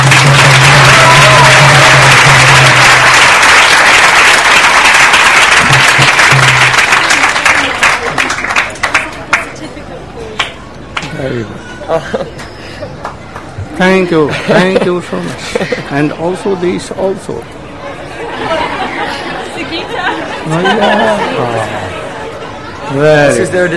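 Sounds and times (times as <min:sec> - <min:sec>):
round of applause: 0:00.0 - 0:09.6
laughter: 0:11.7 - 0:13.0, 0:14.2 - 0:16.1, 0:17.9 - 0:22.7
speech: 0:11.9 - 0:12.3, 0:13.8 - 0:17.6, 0:20.4 - 0:22.0, 0:22.9 - 0:23.7.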